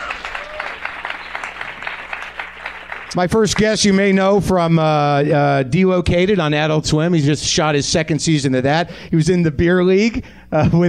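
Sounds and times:
audience applause: 0.0 - 4.2
speech: 3.1 - 10.8.

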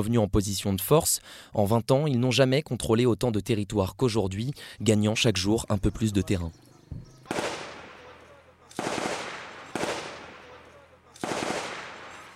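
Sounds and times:
speech: 0.0 - 6.7
gunfire from Afghan government forces in combat: 6.7 - 12.3.

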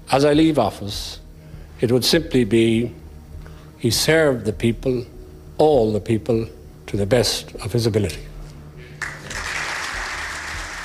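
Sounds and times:
speech: 0.1 - 1.2, 1.8 - 3.0, 3.8 - 8.3
applause and cheering from the Fianna Fáil backbenches in the Dáil: 9.0 - 10.8.

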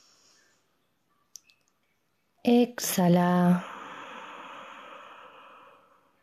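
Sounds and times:
slow inhalation during a guided breathing exercise: 0.0 - 0.7, 3.6 - 6.2
speech: 2.4 - 3.7.

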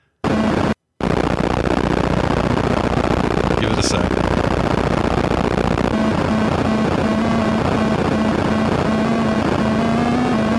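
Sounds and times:
steady low tone: 0.3 - 10.5
Atari 2600-style helicopter game sound effect: 3.4 - 10.5
person speaking: 3.5 - 4.2.

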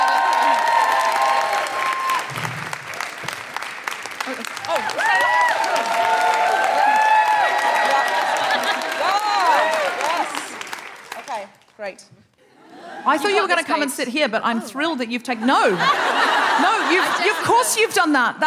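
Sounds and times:
audience applause: 0.0 - 11.6
laughter: 7.8 - 10.4, 15.4 - 18.0
speech: 13.1 - 18.4.

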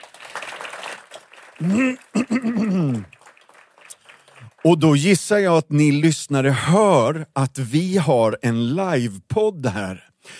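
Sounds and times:
audience applause: 0.0 - 5.2
speech: 1.6 - 3.2, 4.6 - 10.3.

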